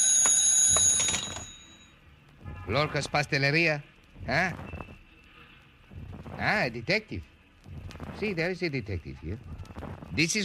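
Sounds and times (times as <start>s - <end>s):
telephone ringing with a metallic bell tone: 0.0s - 1.9s
speech: 2.7s - 4.7s, 6.4s - 7.3s, 8.2s - 9.5s, 10.1s - 10.4s.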